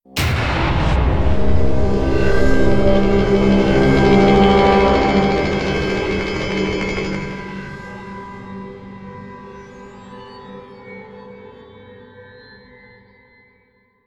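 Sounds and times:
creepy music stinger: 0.2s - 10.6s.

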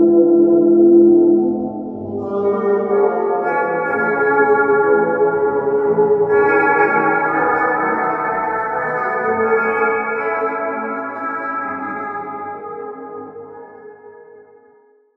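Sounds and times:
jazz music: 0.1s - 13.8s.

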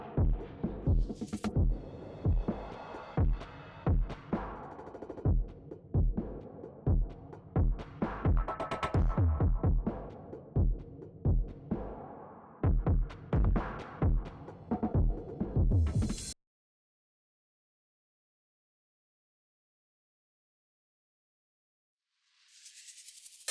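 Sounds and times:
drums: 0.0s - 16.4s, 22.7s - 23.4s.

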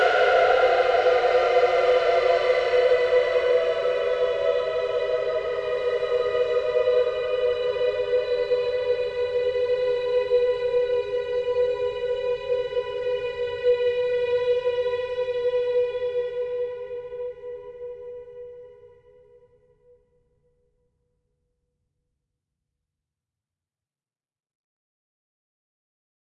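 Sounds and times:
choir singing: 0.0s - 18.9s.

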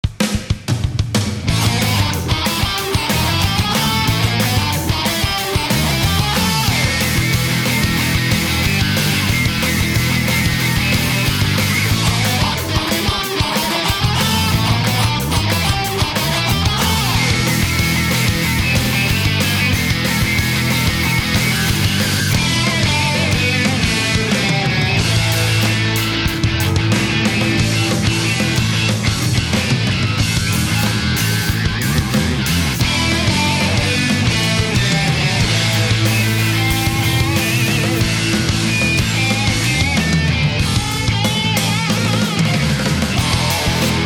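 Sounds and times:
zombie rock music: 0.0s - 44.0s.

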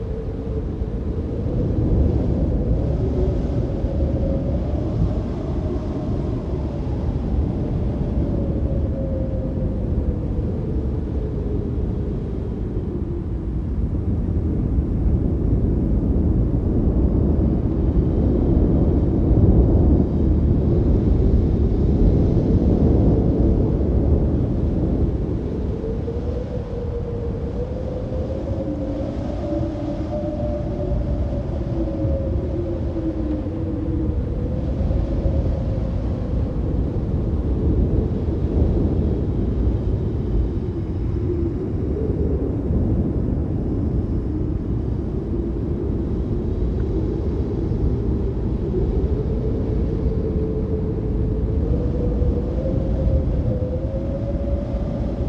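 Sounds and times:
wind: 0.0s - 55.2s.

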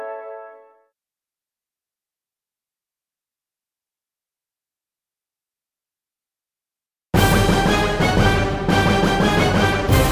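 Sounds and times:
intro music: 7.1s - 10.1s.

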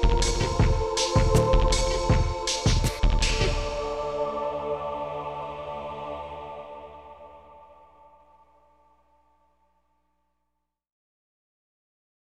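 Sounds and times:
ambient music: 0.0s - 9.4s.

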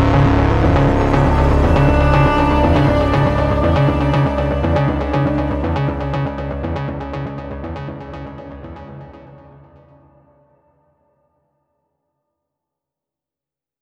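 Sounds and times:
heroic action suspense music one-shot: 0.0s - 7.3s.

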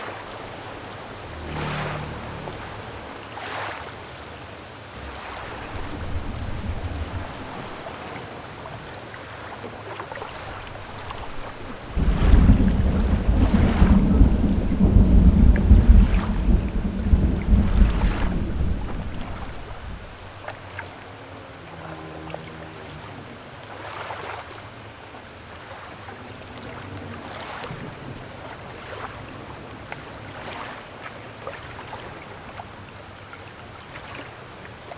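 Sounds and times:
gale wind on cliffs at night: 5.0s - 8.1s, 10.2s - 20.6s.

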